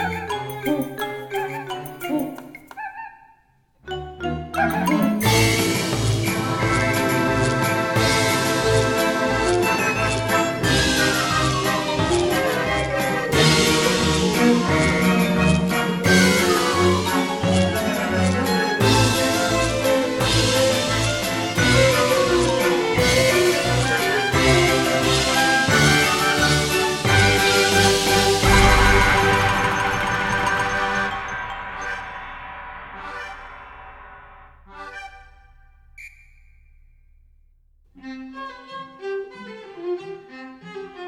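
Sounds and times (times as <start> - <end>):
light intermission music: 0.0 - 2.9, 3.8 - 32.4.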